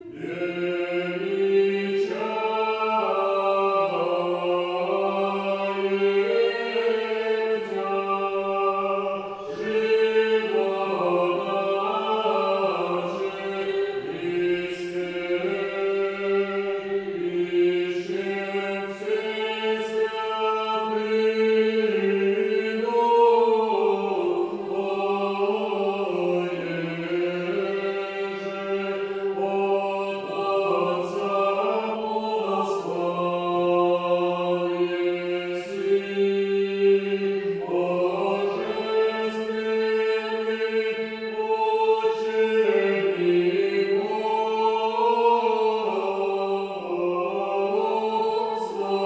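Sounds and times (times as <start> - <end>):
choir chant: 0.0 - 49.0.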